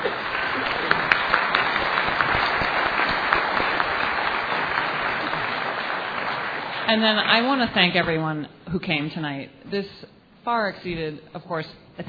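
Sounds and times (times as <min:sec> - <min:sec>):
audience applause: 0:00.0 - 0:07.5
speech: 0:06.9 - 0:12.0.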